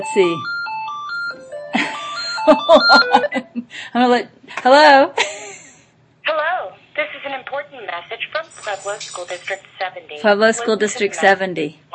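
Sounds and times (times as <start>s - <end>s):
speech: 0.0s - 0.5s, 2.4s - 5.4s, 7.0s - 11.8s
telephone ringing: 0.0s - 3.4s.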